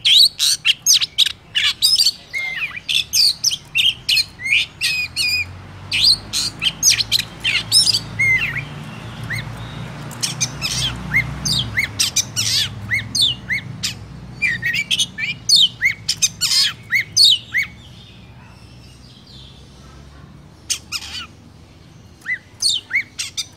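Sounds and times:
Oriental magpie-robin singing: 0:00.0 - 0:23.5.

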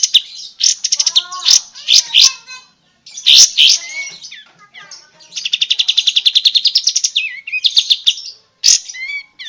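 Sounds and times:
bulbul song lure recording: 0:00.0 - 0:09.4.

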